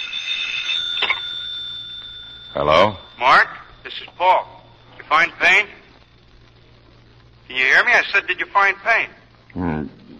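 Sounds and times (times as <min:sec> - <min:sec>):
telephone ringing: 0:00.0 - 0:06.4
speech: 0:02.6 - 0:05.8, 0:07.5 - 0:10.0.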